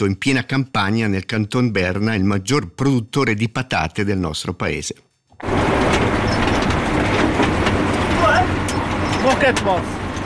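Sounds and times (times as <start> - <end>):
speech: 0.0 - 5.9, 9.2 - 10.0
potato harvester clattering and rattling: 5.4 - 10.2
tractor engine rumbling: 5.4 - 10.2
squeaky chirping metallic sounds: 8.7 - 9.3.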